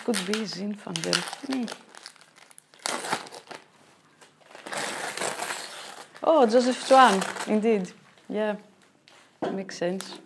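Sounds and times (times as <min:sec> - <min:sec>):
speech: 0:00.0 - 0:01.9, 0:06.3 - 0:08.7, 0:09.4 - 0:10.2
gift wrapping crinkling and tearing as a wrapped wine bottle is opened: 0:00.0 - 0:08.4.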